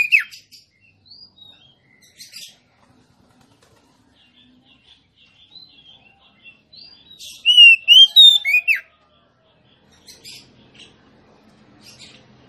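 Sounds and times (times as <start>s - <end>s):
female Oriental magpie-robin singing rich whistled notes: 7.4s - 8.8s.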